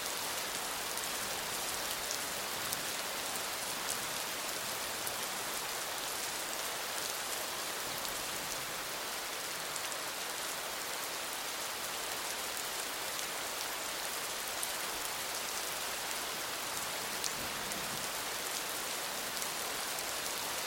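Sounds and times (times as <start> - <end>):
rain in a city: 0.0 - 20.6.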